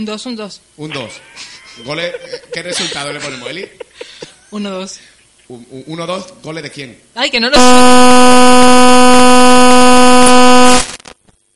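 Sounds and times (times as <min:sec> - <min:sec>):
speech: 0:00.0 - 0:03.9, 0:04.5 - 0:08.7
laughter: 0:01.2 - 0:04.4
loud steady horn blast: 0:07.6 - 0:11.0.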